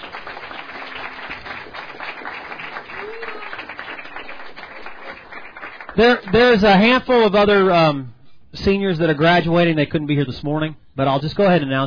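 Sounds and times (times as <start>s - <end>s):
audience applause: 0.0s - 6.9s
speech: 6.0s - 11.8s.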